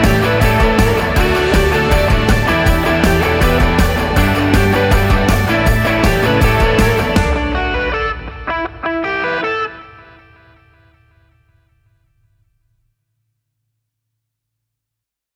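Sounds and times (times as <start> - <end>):
rock version: 0.0 - 10.6.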